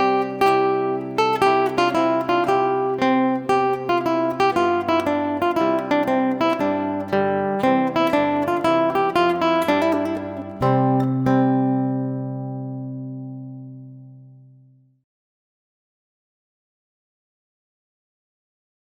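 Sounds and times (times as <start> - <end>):
guitar: 0.0 - 15.0.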